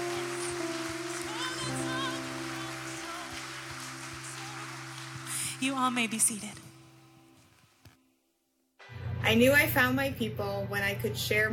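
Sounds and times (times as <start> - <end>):
audience hand clapping: 0.0 - 6.7
speech: 5.6 - 6.7, 9.3 - 11.5.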